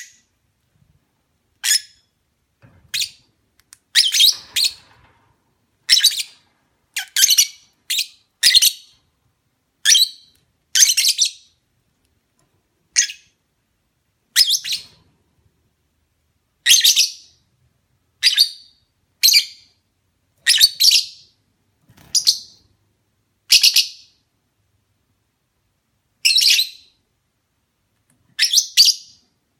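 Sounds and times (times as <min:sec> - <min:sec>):
lovebird mating call chirps: 0:01.6 - 0:02.1, 0:02.9 - 0:03.3, 0:03.9 - 0:04.8, 0:05.9 - 0:09.0, 0:09.8 - 0:11.6, 0:12.9 - 0:13.4, 0:14.3 - 0:15.0, 0:16.6 - 0:17.4, 0:18.2 - 0:19.8, 0:20.4 - 0:21.3, 0:22.0 - 0:22.6, 0:23.5 - 0:24.2, 0:26.2 - 0:27.0, 0:28.4 - 0:29.3.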